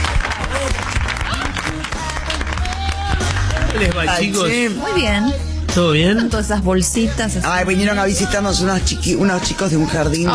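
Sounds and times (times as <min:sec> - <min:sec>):
audience applause: 0:00.0 - 0:04.7
speech: 0:03.8 - 0:10.3.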